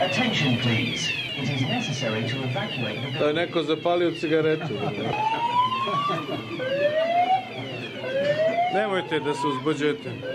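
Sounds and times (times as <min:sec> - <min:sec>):
alarm siren wailing: 0:00.0 - 0:10.3
speech: 0:00.2 - 0:07.7, 0:08.7 - 0:10.3
laughter: 0:02.8 - 0:09.0.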